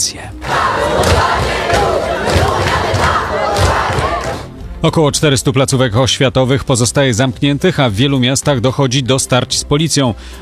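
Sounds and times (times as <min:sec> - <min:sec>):
speech: 0:00.1 - 0:01.0, 0:04.8 - 0:10.3
street protest crowd shouting and chanting: 0:00.4 - 0:04.6.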